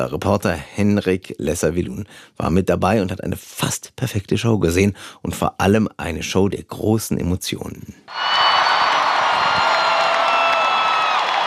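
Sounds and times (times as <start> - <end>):
speech: 0.0 - 8.5
concert crowd cheering and applause: 8.1 - 11.4
whoops: 8.1 - 11.4.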